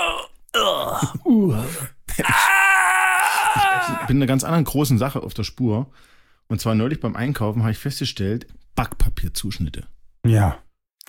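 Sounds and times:
voice imitating suppressed loud screams of old computer games: 0.0 - 4.2
speech: 0.6 - 2.4, 4.1 - 11.0.

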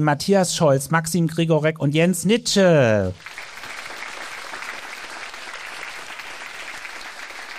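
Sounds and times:
speech: 0.0 - 3.4
audience applause: 3.2 - 7.5.

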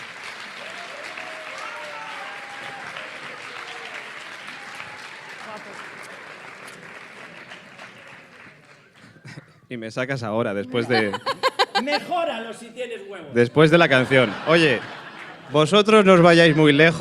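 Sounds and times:
audience applause: 0.0 - 9.4, 13.9 - 15.7
speech: 9.7 - 16.9
laughter: 10.6 - 12.5, 13.5 - 16.9.

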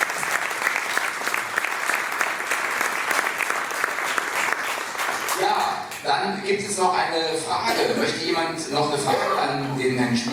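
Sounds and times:
audience applause: 0.0 - 6.0
speech: 6.0 - 10.3.

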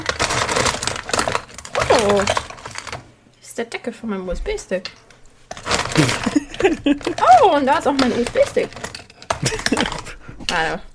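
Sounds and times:
rummaging through a drawer: 0.0 - 3.0, 5.5 - 10.7
speech: 2.0 - 2.4, 3.6 - 5.0, 6.0 - 8.8, 9.4 - 10.9
laughter: 6.0 - 7.3, 9.4 - 10.3.

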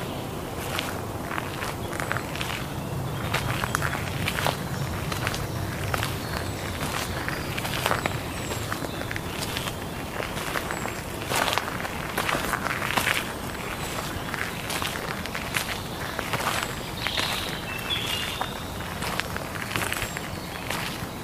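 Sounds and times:
birds chirping: 0.0 - 21.2
footsteps crunching on a soundwalk at the Ludwigsteich near Roßdorf: 0.0 - 21.2
low rumble: 1.0 - 10.3.

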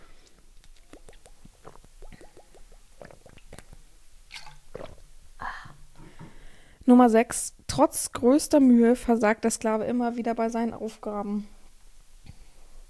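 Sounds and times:
person sipping a drink: 0.0 - 5.0
speech: 6.9 - 11.5.

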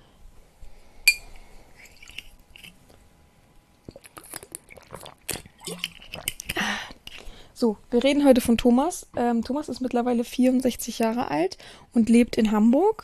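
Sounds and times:
glass clinking: 1.1 - 1.3
person sipping a drink: 1.1 - 3.0, 3.8 - 7.4
speech: 7.6 - 13.0.

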